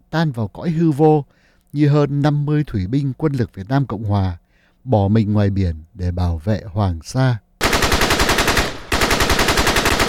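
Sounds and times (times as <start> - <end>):
speech: 0.1 - 7.4
heavy machine gun fire from Vietnamese army soldiers in an old rubber forest: 7.6 - 10.0.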